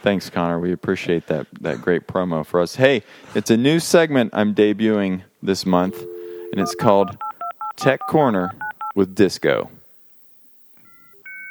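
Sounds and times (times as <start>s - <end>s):
speech: 0.0s - 9.8s
dial-up modem connecting: 5.7s - 11.4s.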